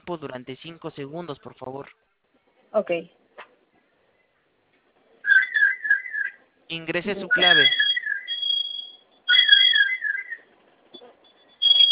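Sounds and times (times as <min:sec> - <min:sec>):
speech: 0:00.1 - 0:03.2, 0:06.7 - 0:07.8
fire alarm sounding: 0:05.3 - 0:06.4, 0:07.3 - 0:11.9.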